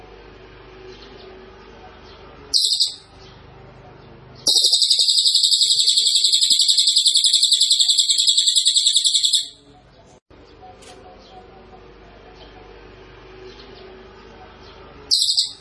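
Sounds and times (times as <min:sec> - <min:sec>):
small minivet song: 0:02.5 - 0:03.7, 0:04.4 - 0:15.5.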